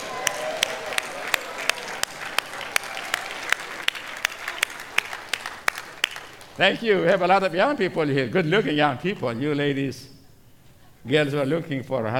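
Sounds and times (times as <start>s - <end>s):
audience clapping hands: 0.0s - 7.5s
speech: 6.6s - 10.1s, 11.0s - 12.1s.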